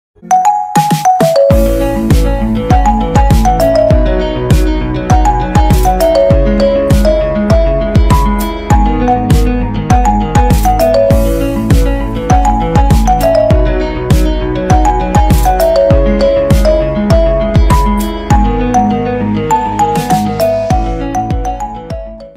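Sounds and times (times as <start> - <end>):
instrumental ringtone: 0.2 - 22.3.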